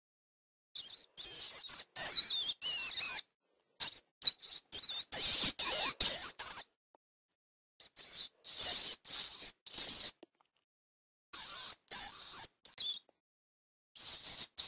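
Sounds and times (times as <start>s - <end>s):
rat squeaks: 0.8s - 6.8s, 7.8s - 10.2s, 11.3s - 13.1s, 14.0s - 14.6s.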